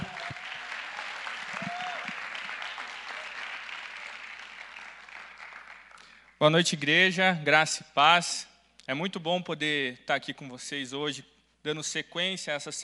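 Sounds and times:
audience clapping: 0.0 - 6.4
speech: 6.4 - 12.8.

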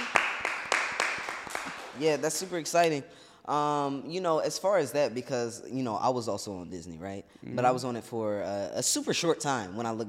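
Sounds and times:
clapping: 0.0 - 2.5
speech: 2.0 - 10.0.

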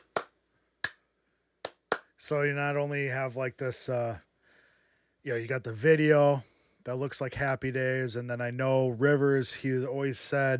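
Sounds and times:
hand claps: 0.0 - 2.2
speech: 2.2 - 4.3, 5.2 - 10.5.

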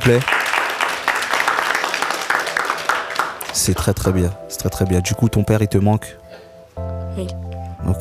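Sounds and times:
speech: 0.0 - 0.4, 3.6 - 6.2, 7.2 - 7.9
audience applause: 0.0 - 4.2.

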